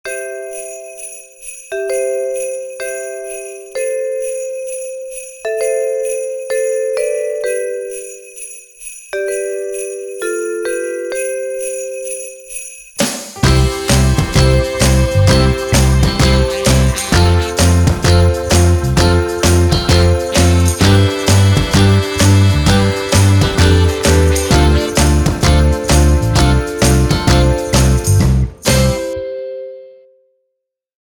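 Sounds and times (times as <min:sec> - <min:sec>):
instrumental music: 0:01.9 - 0:30.1.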